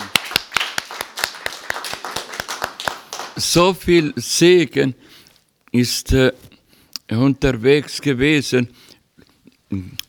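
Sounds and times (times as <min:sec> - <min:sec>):
group clapping in rhythm: 0:00.0 - 0:03.8
speech: 0:03.4 - 0:06.5, 0:07.1 - 0:08.8, 0:09.7 - 0:10.0.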